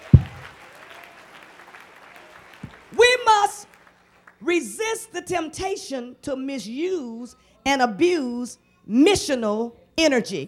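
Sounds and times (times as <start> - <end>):
audience clapping: 0.0 - 4.5
low thump: 0.1 - 0.4
speech: 4.5 - 10.4.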